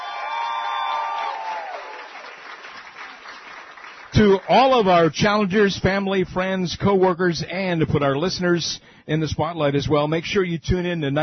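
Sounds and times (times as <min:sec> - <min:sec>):
audience applause and cheering: 0:00.0 - 0:04.7
speech: 0:04.2 - 0:11.2.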